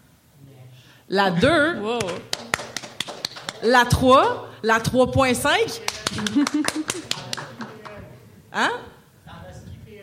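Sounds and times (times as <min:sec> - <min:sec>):
speech: 0:01.1 - 0:02.4, 0:03.6 - 0:06.8, 0:08.5 - 0:08.9
scattered audience claps: 0:02.0 - 0:04.4, 0:05.8 - 0:08.0
laughter: 0:06.0 - 0:07.8.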